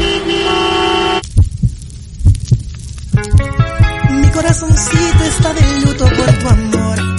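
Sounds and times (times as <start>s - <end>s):
car horn honking in a traffic jam: 0.0s - 1.2s, 4.8s - 6.7s
low thudding double pulses: 1.2s - 7.0s.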